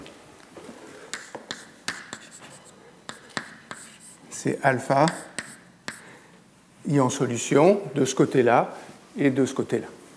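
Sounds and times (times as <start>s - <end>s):
writing on a board: 1.1s - 4.2s, 5.0s - 6.0s
speech: 4.4s - 5.3s, 6.9s - 10.0s.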